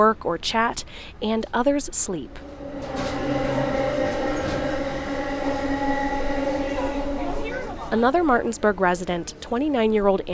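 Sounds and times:
speech: 0.0 - 3.1, 7.9 - 10.3
commuter train rumbling along the rails: 2.2 - 9.0.

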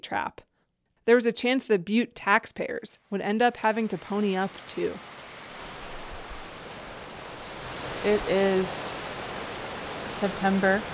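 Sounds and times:
speech: 0.0 - 5.2, 8.0 - 9.0, 10.2 - 10.9
heavy rain during thunderstorm: 3.6 - 10.9.

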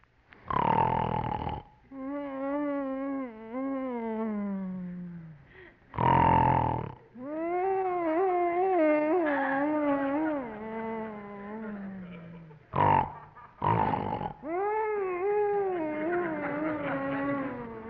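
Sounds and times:
man snoring, grunting and snorting: 0.5 - 7.0, 7.8 - 17.8
laughter: 9.0 - 13.7, 14.5 - 17.8.

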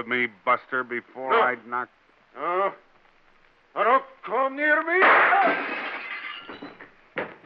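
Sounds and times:
speech: 0.0 - 2.9, 3.7 - 5.9
gunshot shattering a window: 5.0 - 5.6
glass shattering: 5.0 - 7.0.

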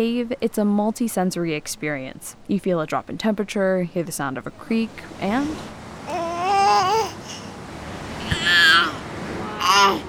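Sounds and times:
speech: 0.0 - 5.8, 6.7 - 7.2, 9.8 - 10.0
soft hiss: 0.0 - 10.0
seven-month-old baby babbling: 6.1 - 7.5, 8.2 - 10.0.

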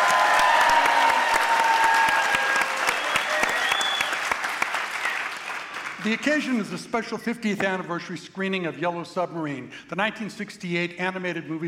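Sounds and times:
live theater audience applause at the Bing Crosby Theater in Spokane: 0.0 - 6.2
speech: 6.0 - 11.6.

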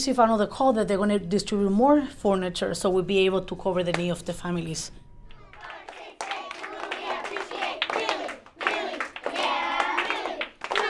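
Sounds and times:
speech: 0.0 - 5.0
third graders clapping: 5.3 - 10.8.

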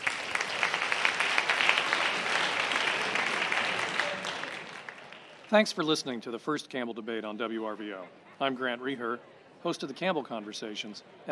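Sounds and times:
audience applause: 0.0 - 5.6
speech: 5.5 - 11.3.

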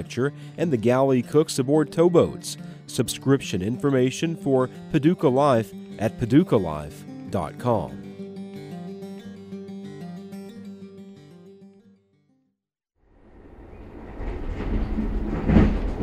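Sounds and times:
speech: 0.0 - 8.0
Amtrak City of New Orleans passenger train rolling on tracks: 13.4 - 16.0.

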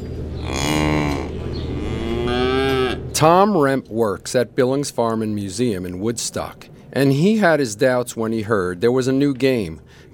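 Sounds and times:
cows mooing: 0.4 - 3.2
speech: 3.2 - 10.0.

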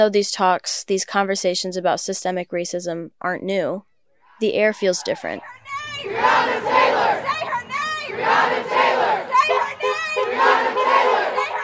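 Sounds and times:
speech: 0.0 - 6.5
protest crowd chanting: 4.8 - 11.6.

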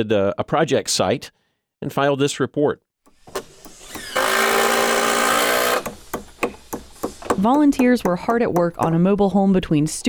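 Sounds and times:
speech: 0.0 - 2.9, 7.4 - 10.0
miter saw whine cutting new deck boards: 3.1 - 7.4
screw drivers driving screws into new deck boards at a mobile home: 3.1 - 9.0
sharp clicks and knocks: 3.1 - 9.3.

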